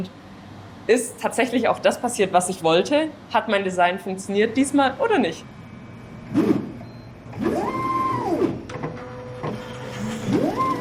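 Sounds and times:
speech: 0.0 - 0.2, 0.9 - 5.6
steady mechanical hum: 0.0 - 10.7
pipetting robot motors whining: 6.3 - 10.7.

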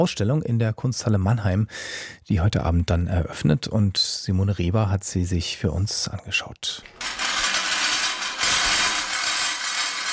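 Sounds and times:
speech: 0.0 - 7.2
clattering motorized scrap-metal kinetic sculpture: 6.9 - 10.1.

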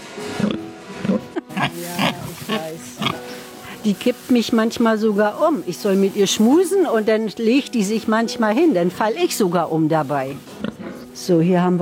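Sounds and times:
pigs grunting and snorting: 0.3 - 3.8, 10.3 - 11.2
speech: 3.8 - 10.6, 11.2 - 11.8.

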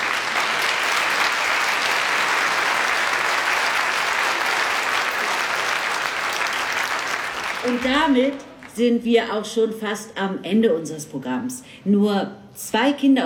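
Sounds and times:
audience applause: 0.0 - 8.7
speech: 7.6 - 13.2.

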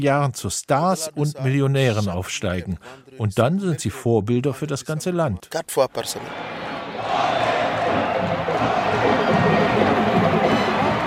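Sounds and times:
speech: 0.0 - 9.2
stadium crowd singing: 6.3 - 11.0
stadium crowd clapping: 7.0 - 11.0
stadium crowd drumming: 7.0 - 11.0.

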